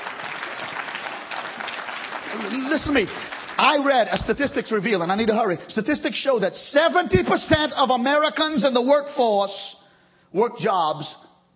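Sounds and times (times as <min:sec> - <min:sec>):
audience clapping: 0:00.0 - 0:05.5
speech: 0:02.3 - 0:11.2.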